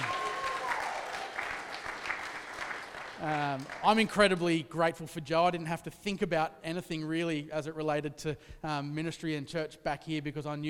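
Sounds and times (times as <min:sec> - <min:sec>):
crowd clapping in a room: 0:00.0 - 0:04.6
speech: 0:03.2 - 0:10.6.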